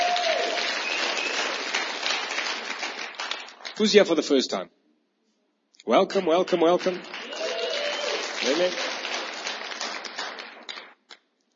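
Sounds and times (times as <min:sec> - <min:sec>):
church congregation applauding after worship: 0:00.0 - 0:04.0, 0:06.1 - 0:11.0
speech: 0:03.8 - 0:04.8, 0:05.8 - 0:07.2, 0:08.4 - 0:08.8.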